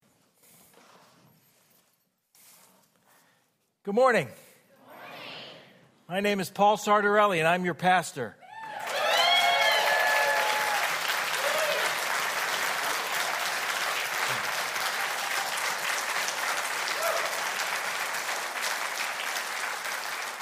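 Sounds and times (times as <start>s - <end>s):
speech: 3.9s - 4.4s, 6.1s - 8.4s
whoop or whistle: 8.4s - 11.9s
large audience applauding: 8.6s - 20.4s.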